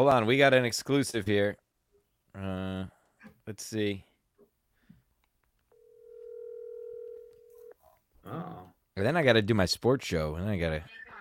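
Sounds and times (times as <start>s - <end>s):
speech: 0.0s - 1.6s, 2.3s - 4.1s, 8.3s - 11.0s
incoming phone call tone: 5.7s - 7.7s.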